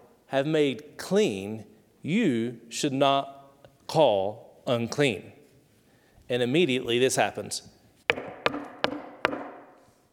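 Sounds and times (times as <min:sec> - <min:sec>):
speech: 0:00.3 - 0:05.4, 0:06.3 - 0:07.8
sharp knocks on a door: 0:08.1 - 0:09.6.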